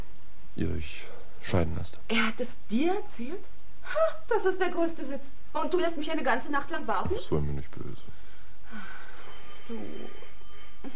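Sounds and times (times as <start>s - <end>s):
speech: 0.6s - 9.0s, 9.7s - 10.3s
telephone ringing: 8.9s - 10.9s.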